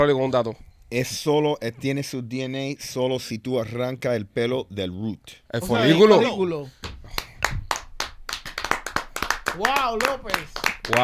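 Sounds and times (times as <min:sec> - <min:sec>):
speech: 0:00.0 - 0:06.8, 0:09.6 - 0:11.0
small group clapping: 0:06.8 - 0:11.0.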